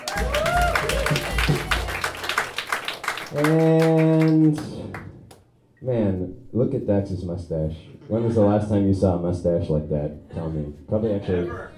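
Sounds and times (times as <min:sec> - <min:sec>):
people whooping: 0:00.0 - 0:02.6
audience clapping: 0:00.0 - 0:05.5
speech: 0:03.3 - 0:04.7, 0:05.8 - 0:11.7.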